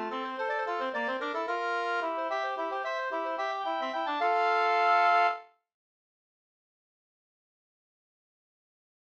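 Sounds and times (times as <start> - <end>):
polska folk dance tune: 0.0 - 5.4.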